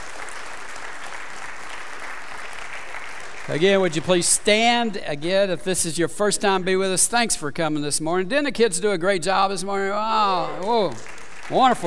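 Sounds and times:
congregation applauding at a Sunday morning worship service: 0:00.0 - 0:05.2, 0:09.9 - 0:11.8
speech: 0:03.5 - 0:11.8.

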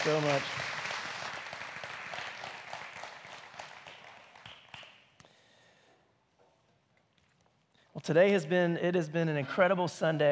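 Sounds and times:
speech: 0:00.0 - 0:00.7, 0:08.0 - 0:10.2
audience applauding: 0:00.0 - 0:05.1.

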